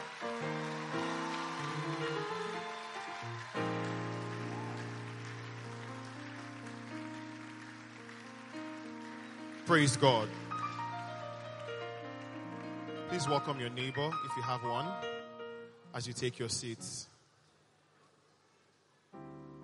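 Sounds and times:
audience clapping: 0.0s - 13.9s
speech: 9.7s - 10.4s, 13.2s - 15.1s, 15.9s - 17.1s.

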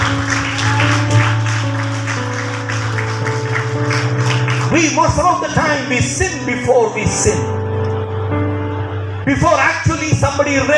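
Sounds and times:
audience clapping rhythmically: 0.0s - 5.5s
droning organ chord: 0.0s - 10.7s
speech: 4.8s - 7.6s, 9.3s - 10.7s.

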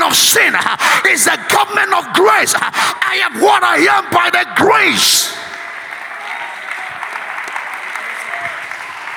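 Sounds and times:
speech: 0.2s - 5.5s
crowd clapping: 4.8s - 9.1s.

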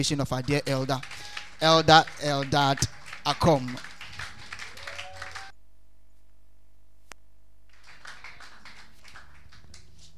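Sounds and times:
speech: 0.0s - 3.9s
audience clapping: 0.0s - 5.5s, 7.7s - 10.1s.

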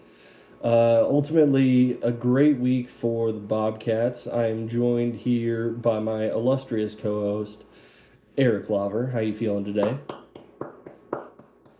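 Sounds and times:
speech: 0.6s - 7.8s, 8.4s - 10.2s
light golf clap: 9.8s - 11.7s.

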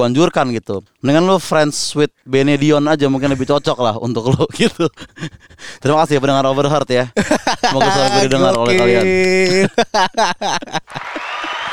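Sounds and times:
speech: 0.0s - 11.5s
laughter: 6.4s - 11.7s
crowd applause: 7.8s - 9.6s, 10.8s - 11.7s
person calling out: 7.8s - 9.6s.

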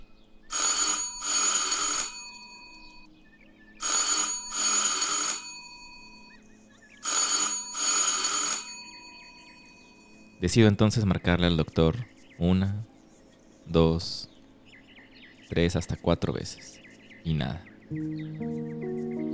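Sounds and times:
doorbell ringing: 0.5s - 3.1s, 3.8s - 6.4s, 7.0s - 10.4s
speech: 10.4s - 12.9s, 13.7s - 14.3s, 15.5s - 18.8s.

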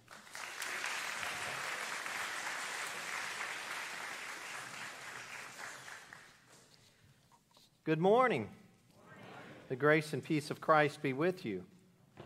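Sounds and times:
church congregation applauding the band at a Sunday worship service: 0.0s - 6.5s
speech: 7.9s - 8.6s, 9.7s - 11.7s.

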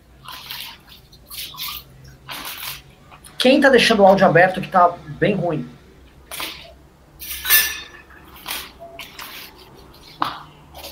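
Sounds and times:
speech: 3.4s - 5.8s
cups clinking in a kitchen: 7.2s - 9.3s.

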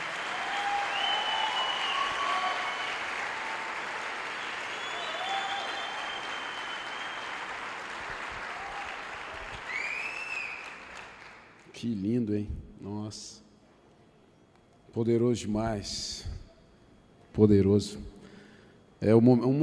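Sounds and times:
audience applauding loudly: 0.0s - 11.7s
speech: 11.8s - 13.4s, 14.9s - 16.3s, 17.4s - 18.1s, 19.0s - 19.6s.

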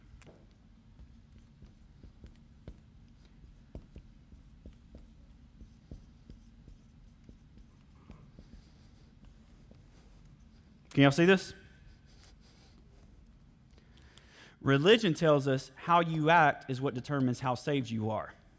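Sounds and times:
steady low hum: 0.0s - 17.2s
writing on a board during a sermon: 0.1s - 10.8s
speech: 10.9s - 11.6s, 14.7s - 18.4s.

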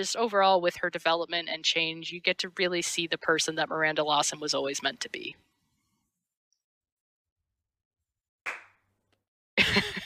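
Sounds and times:
speech: 0.0s - 5.5s
hand clapping: 8.5s - 8.8s.

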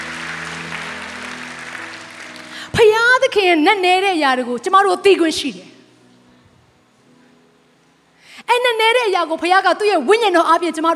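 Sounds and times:
church congregation clapping their hands: 0.0s - 2.7s
speech: 2.7s - 5.7s, 9.0s - 10.9s.

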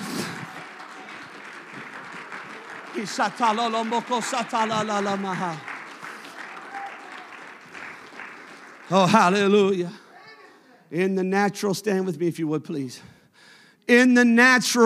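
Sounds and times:
audience shouting: 0.0s - 7.5s
audience clapping hands: 0.0s - 10.1s
speech: 3.0s - 5.7s, 8.9s - 10.0s, 10.9s - 13.2s, 13.9s - 14.8s.

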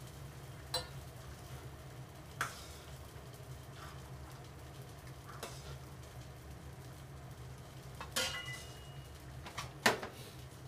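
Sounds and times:
kitchen low hum and soft hiss: 0.0s - 10.6s
dishes or utensils clinking: 0.7s - 1.0s, 8.0s - 9.0s.

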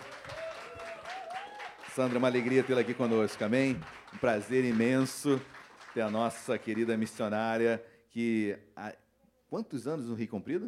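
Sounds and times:
audience applause: 0.0s - 7.0s
speech: 2.0s - 10.6s.

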